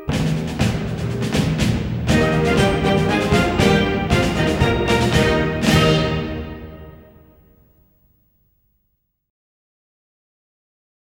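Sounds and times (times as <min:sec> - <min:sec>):
fantasy on a Canadian folk song: 0:00.0 - 0:07.5.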